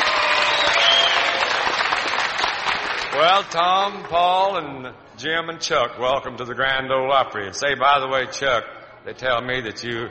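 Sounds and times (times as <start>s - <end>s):
audience applause at the Grand Ole Opry: 0.0s - 3.6s
speech: 3.2s - 10.1s.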